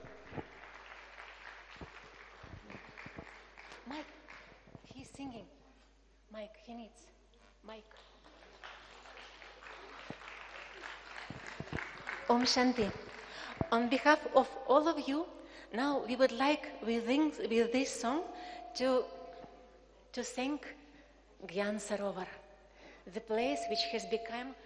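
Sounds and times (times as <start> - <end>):
audience applauding for performers: 0.0 - 4.6, 8.4 - 13.7
speech: 3.9 - 4.2, 6.4 - 8.1, 12.3 - 13.0, 13.7 - 19.2, 20.2 - 20.8, 21.4 - 22.4, 23.1 - 24.6.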